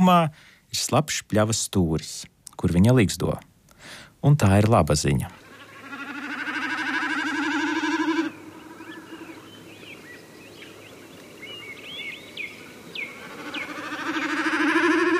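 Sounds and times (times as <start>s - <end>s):
speech: 0.0s - 5.4s
common snipe call: 5.5s - 8.4s, 13.4s - 15.1s.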